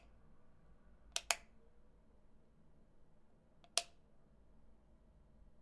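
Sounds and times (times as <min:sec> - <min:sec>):
light switch click: 0:01.1 - 0:01.5, 0:03.6 - 0:04.0.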